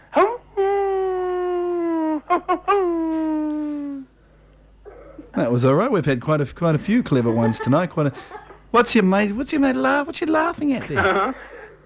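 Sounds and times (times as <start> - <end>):
person imitating a howl: 0.1 - 4.1
speech: 2.4 - 3.8, 5.4 - 11.5
laughter: 7.0 - 8.7, 10.8 - 11.7.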